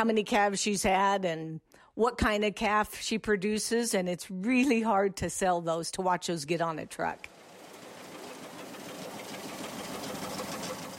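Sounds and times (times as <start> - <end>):
speech: 0.0 - 7.4
corkscrew grain auger moving oats between bins: 7.3 - 10.9.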